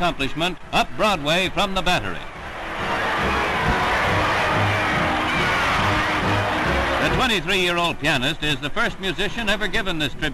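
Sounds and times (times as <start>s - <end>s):
speech: 0.0s - 3.0s, 7.2s - 10.3s
crowd roaring welcome at a parade up Broadway in New York: 2.3s - 7.5s.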